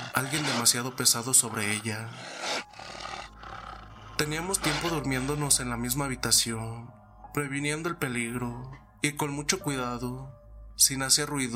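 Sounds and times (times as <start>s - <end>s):
beast growling inside the house: 0.0s - 5.8s
speech: 0.2s - 2.6s, 4.2s - 11.5s.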